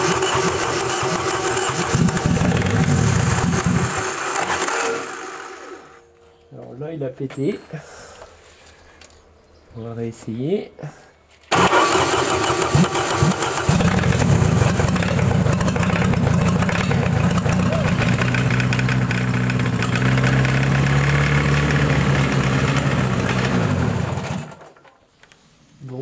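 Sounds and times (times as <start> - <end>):
engine cranking: 0.0 - 5.6, 11.5 - 24.8
speech: 7.0 - 8.0, 9.8 - 11.1.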